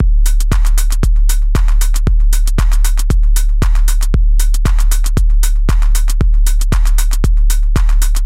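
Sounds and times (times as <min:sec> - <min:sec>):
dub techno loop: 0:00.0 - 0:08.2.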